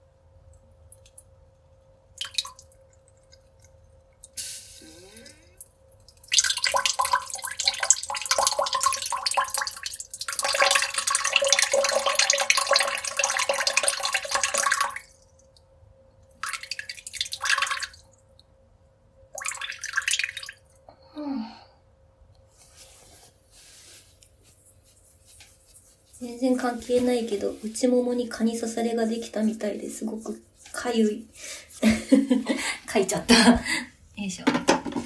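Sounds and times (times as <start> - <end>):
faint constant hum: 0.0 - 35.0
person urinating: 2.1 - 15.2, 16.4 - 18.1, 19.4 - 20.8
speech: 26.4 - 31.5, 32.2 - 33.9.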